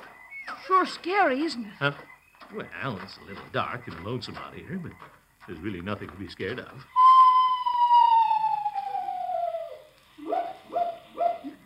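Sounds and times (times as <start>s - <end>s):
speech: 0.7s - 7.0s
screech owl call: 6.9s - 11.6s.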